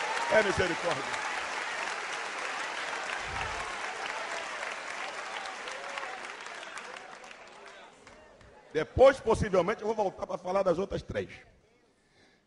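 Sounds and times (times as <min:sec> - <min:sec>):
audience applause: 0:00.0 - 0:08.7
speech: 0:00.3 - 0:01.2, 0:08.7 - 0:11.6.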